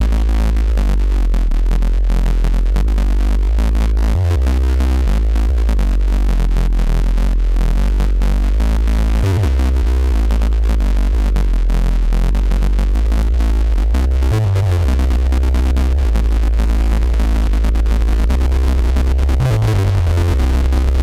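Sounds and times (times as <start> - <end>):
bass: 0.0 - 21.0.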